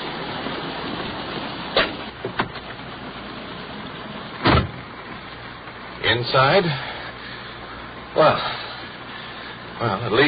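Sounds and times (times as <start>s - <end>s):
rain hiss: 0.0s - 10.2s
police car door opening: 1.7s - 2.9s, 4.4s - 4.9s
speech: 6.1s - 6.9s, 8.2s - 8.6s, 9.8s - 10.2s.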